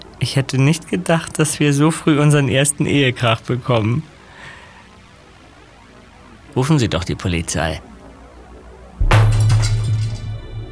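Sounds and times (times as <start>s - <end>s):
speech: 0.2s - 4.1s, 6.6s - 7.9s
broken electronic parts thrown onto floor: 9.0s - 10.7s
low resonant hum: 9.0s - 10.7s.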